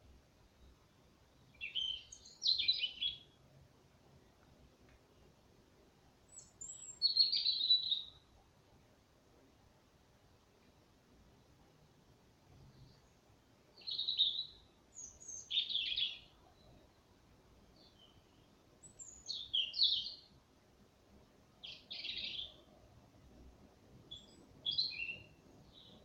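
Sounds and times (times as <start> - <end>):
European robin song: 0.0 - 3.4, 6.2 - 8.4, 12.6 - 20.4, 21.5 - 22.8, 24.0 - 26.0
faint background hiss: 0.0 - 26.0.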